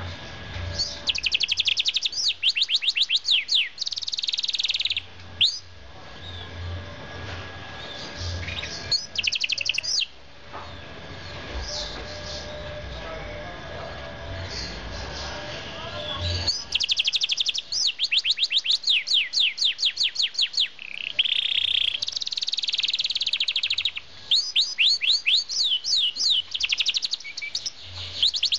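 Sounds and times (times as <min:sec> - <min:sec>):
low hum: 0:00.0 - 0:18.8
bird chirping: 0:00.7 - 0:06.8, 0:07.8 - 0:13.2, 0:14.3 - 0:28.5.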